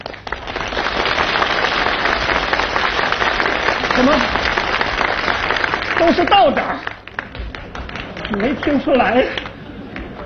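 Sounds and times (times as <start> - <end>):
thunderous audience applause: 0.0 - 9.6
speech: 6.0 - 6.8, 8.4 - 9.5.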